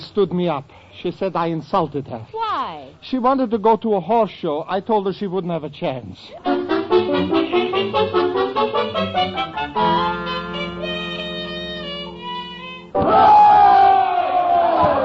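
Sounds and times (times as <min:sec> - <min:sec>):
speech: 0:00.2 - 0:09.8
crowd cheering and shouting at a political rally: 0:13.0 - 0:15.0.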